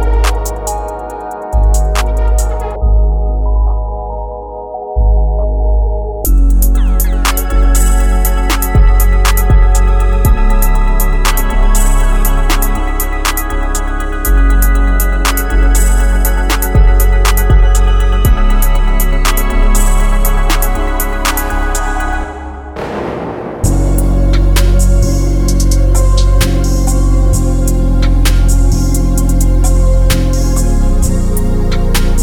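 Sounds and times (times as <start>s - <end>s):
ambient experimental music: 0.0s - 32.2s.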